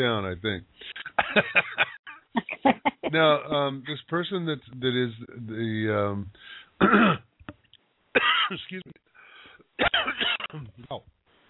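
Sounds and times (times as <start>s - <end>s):
speech: 0.0s - 7.3s, 8.2s - 9.0s, 9.8s - 11.2s
laughter: 1.0s - 3.3s
person with something caught in the throat clearing throat: 6.8s - 7.3s, 9.8s - 11.0s.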